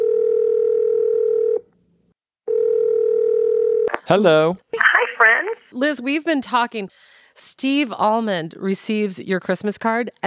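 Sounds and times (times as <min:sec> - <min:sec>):
telephone dial tone while placing a call: 0:00.0 - 0:01.7, 0:02.5 - 0:03.9
speech: 0:04.1 - 0:04.9, 0:05.8 - 0:10.2.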